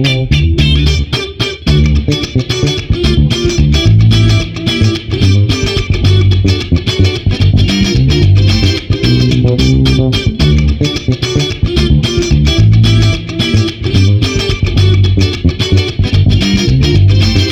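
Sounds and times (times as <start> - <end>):
funk boogie bass guitar: 0.0 - 17.5.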